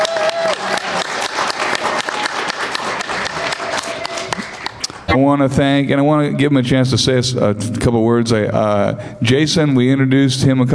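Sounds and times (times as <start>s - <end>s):
audience applause for a speaker at a podium: 0.0s - 5.1s
speech: 5.1s - 10.7s.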